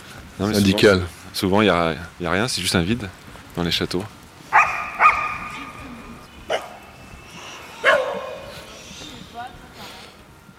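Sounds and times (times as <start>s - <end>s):
speech: 0.4s - 4.2s
dogs barking: 4.5s - 8.8s.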